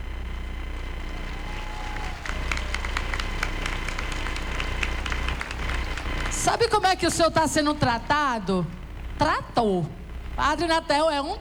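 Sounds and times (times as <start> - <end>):
audience applause for a priest: 1.0 - 7.2
speech: 6.5 - 11.3.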